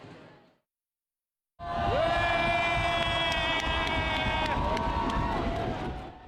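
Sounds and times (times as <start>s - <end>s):
fireworks spectators cheering: 1.6s - 6.2s.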